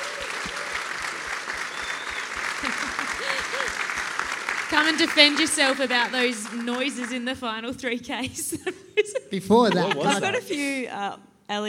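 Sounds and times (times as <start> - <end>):
audience round of applause: 0.0 - 7.6
laughter: 2.5 - 4.0, 8.3 - 10.7
speech: 4.7 - 11.6.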